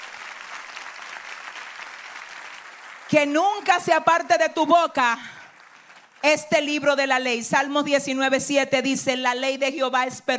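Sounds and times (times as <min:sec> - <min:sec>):
large crowd applause: 0:00.0 - 0:03.9, 0:05.2 - 0:06.2
speech: 0:03.1 - 0:05.4, 0:06.2 - 0:10.3.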